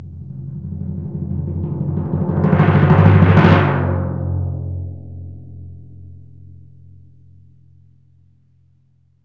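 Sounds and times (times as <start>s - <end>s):
timpani roll crescendo: 0.0s - 4.9s.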